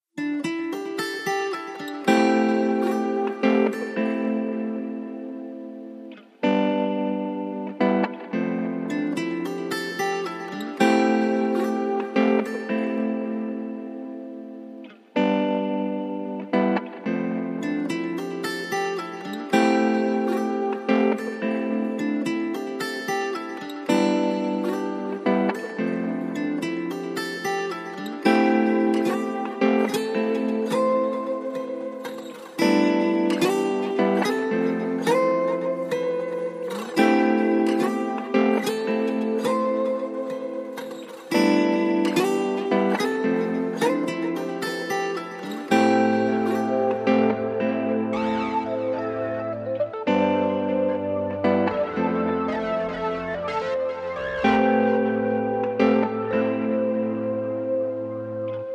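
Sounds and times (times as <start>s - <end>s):
guitar mix: 0.0s - 58.7s.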